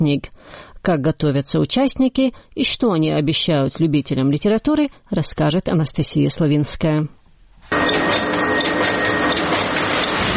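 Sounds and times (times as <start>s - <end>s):
speech: 0.0s - 8.2s
print-shop machine cutting a large paper roll into sheets: 7.7s - 10.3s.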